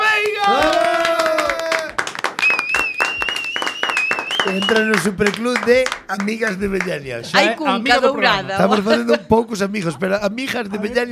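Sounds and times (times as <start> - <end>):
audience applause: 0.0 - 7.3
laughter: 4.5 - 9.4
speech: 4.6 - 11.1.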